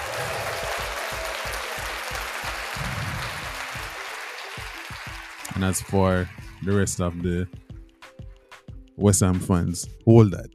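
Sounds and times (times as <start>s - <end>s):
round of applause: 0.0s - 7.2s
speech: 5.6s - 7.6s, 9.0s - 10.5s.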